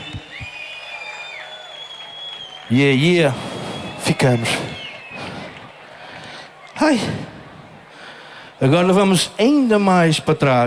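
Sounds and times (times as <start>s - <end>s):
sustained high whistle: 0.0s - 2.7s, 3.4s - 5.3s
audience applause: 0.0s - 7.1s
speech: 2.7s - 4.8s, 6.8s - 7.3s, 8.6s - 10.6s.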